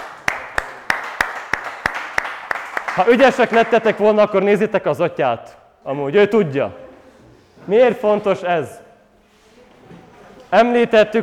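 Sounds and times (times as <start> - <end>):
rhythmic clapping to applaud the winners of a group game: 0.0 - 4.4
speech: 3.0 - 6.8, 7.7 - 8.8, 10.5 - 11.2.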